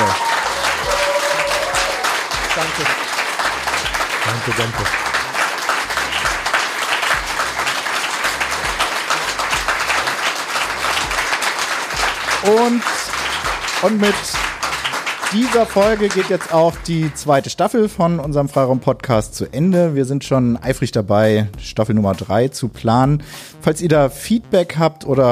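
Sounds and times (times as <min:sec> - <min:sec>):
audience applause: 0:00.0 - 0:17.4
speech: 0:02.6 - 0:03.0, 0:04.2 - 0:05.1, 0:12.4 - 0:13.0, 0:13.8 - 0:14.5, 0:15.3 - 0:25.2.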